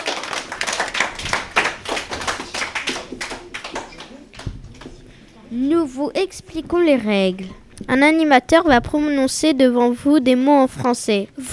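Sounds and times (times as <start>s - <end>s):
small audience clapping: 0.0s - 5.5s
speech: 5.6s - 11.5s.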